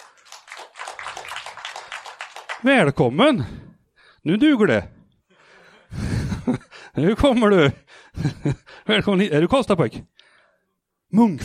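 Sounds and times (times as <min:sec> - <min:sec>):
audience applause at a live comedy show: 0:00.0 - 0:02.8
speech: 0:02.6 - 0:03.6, 0:04.2 - 0:05.0, 0:05.9 - 0:10.1, 0:11.1 - 0:11.4.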